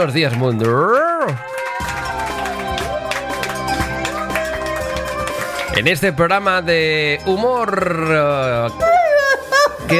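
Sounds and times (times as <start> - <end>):
speech: 0.0 - 2.0, 5.8 - 9.0
crowd cheering and applauding: 0.0 - 9.9
whooping: 1.0 - 5.8.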